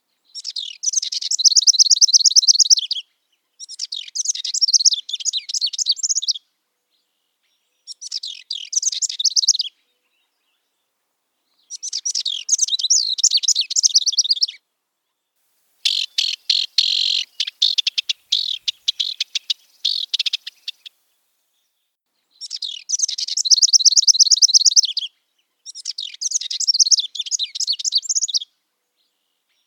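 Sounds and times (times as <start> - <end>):
house wren singing a tumbling jumbled warble: 0.3 - 3.0, 3.6 - 6.4, 7.0 - 10.9, 11.5 - 15.2, 15.8 - 21.0, 21.6 - 29.6.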